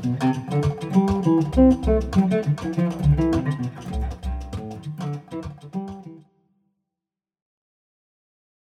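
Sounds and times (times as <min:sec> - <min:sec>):
swinging bossa nova music: 0:00.0 - 0:06.2.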